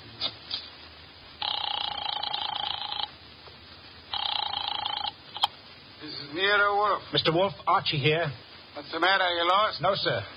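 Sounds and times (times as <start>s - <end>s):
office telephone being dialed: 1.4s - 3.1s, 4.2s - 5.5s
speech: 6.4s - 10.3s.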